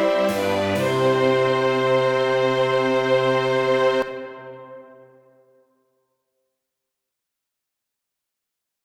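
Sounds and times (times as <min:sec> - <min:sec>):
pastoral orchestral music: 0:00.0 - 0:05.6.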